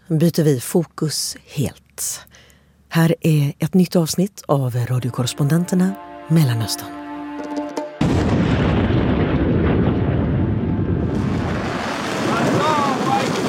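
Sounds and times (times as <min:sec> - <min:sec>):
speech: 0:00.1 - 0:07.0
rockets launching: 0:08.0 - 0:13.4
faint voices cheering: 0:12.3 - 0:13.4.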